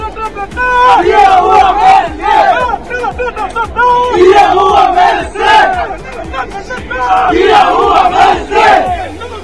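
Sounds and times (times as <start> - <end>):
Argentine football fans chanting in unison at the World Cup: 0.8 - 2.7, 3.9 - 9.2.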